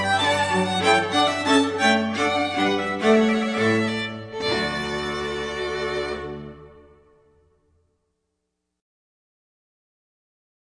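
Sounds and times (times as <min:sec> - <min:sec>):
quartet playing music: 0:00.0 - 0:07.1.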